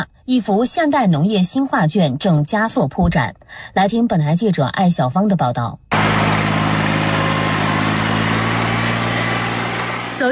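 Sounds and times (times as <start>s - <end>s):
speech: 0.0s - 5.8s
rice transplanting machine engine drone across a paddy field at Nanniwan: 5.9s - 10.3s.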